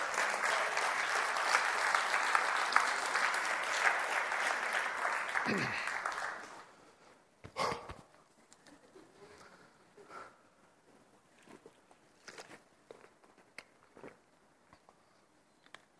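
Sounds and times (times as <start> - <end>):
audience applauding: 0.0 - 6.8.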